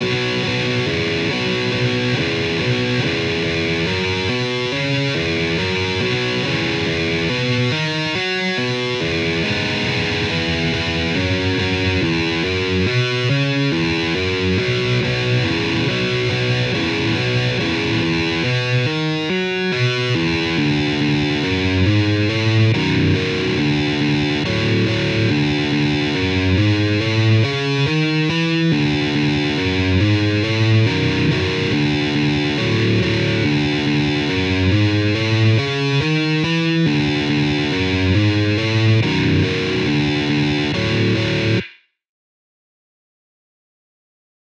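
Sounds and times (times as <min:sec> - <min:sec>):
guitar: 0:00.0 - 0:41.9.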